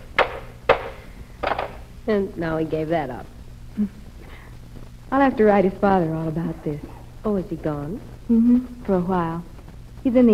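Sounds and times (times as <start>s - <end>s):
wooden hammer banging: 0.0s - 1.8s
speech: 2.1s - 4.0s, 5.1s - 10.3s.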